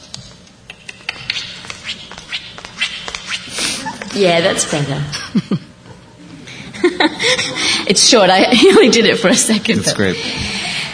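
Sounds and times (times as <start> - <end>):
footsteps, heel and toe hitting floor: 1.5 - 4.2
speech: 4.2 - 5.7, 7.0 - 10.7.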